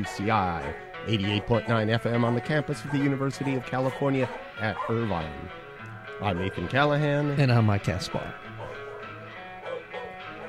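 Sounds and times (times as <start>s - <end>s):
dog barking: 0.0s - 5.5s, 6.2s - 6.8s, 8.5s - 10.4s
speech: 0.0s - 5.6s, 6.2s - 8.5s.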